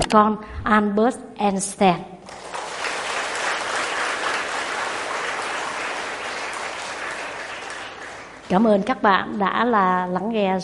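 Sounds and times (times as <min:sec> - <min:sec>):
speech: 0:00.1 - 0:02.5, 0:08.5 - 0:10.6
audience applause: 0:02.3 - 0:08.5.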